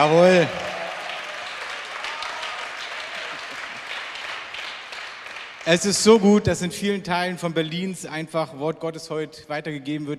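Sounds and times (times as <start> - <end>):
speech: 0.0 - 0.6, 5.7 - 10.1
audience clapping: 0.0 - 6.2.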